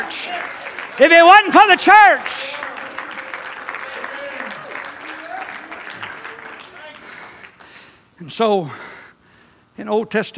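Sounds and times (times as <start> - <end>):
speech: 0.0 - 2.6, 8.2 - 8.9, 9.8 - 10.3
audience clapping hands for the church: 0.0 - 7.9.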